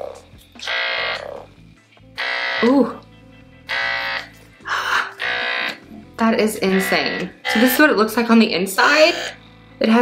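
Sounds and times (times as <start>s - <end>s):
sex toy vibrator buzzing: 0.0s - 2.9s, 3.6s - 7.9s, 8.8s - 9.4s
speech: 2.6s - 3.0s, 6.4s - 10.0s.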